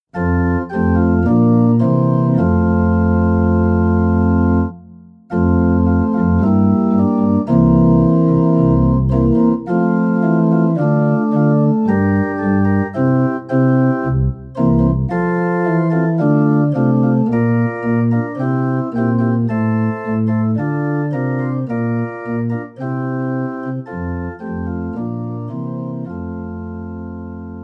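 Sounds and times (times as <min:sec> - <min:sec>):
musical accompaniment: 0:00.1 - 0:27.6.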